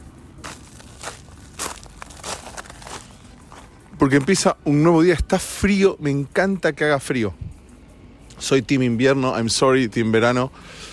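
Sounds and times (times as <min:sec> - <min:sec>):
footsteps crunching on gravel: 0:00.0 - 0:04.8
low rumble: 0:00.0 - 0:09.5
speech: 0:04.0 - 0:07.5, 0:08.4 - 0:10.9.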